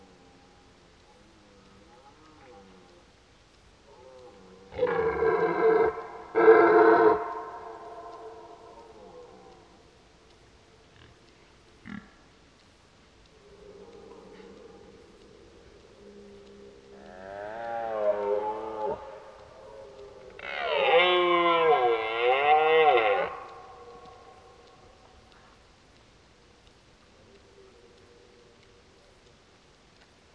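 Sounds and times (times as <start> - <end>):
click: 1.0 - 6.3, 7.2 - 30.3
red deer roaring: 4.7 - 9.8, 16.4 - 24.8.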